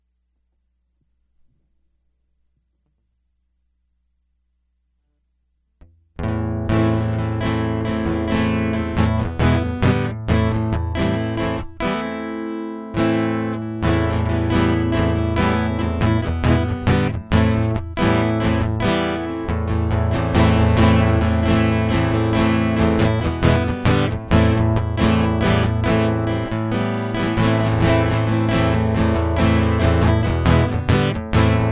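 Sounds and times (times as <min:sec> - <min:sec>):
guitar loop: 0:06.2 - 0:31.7.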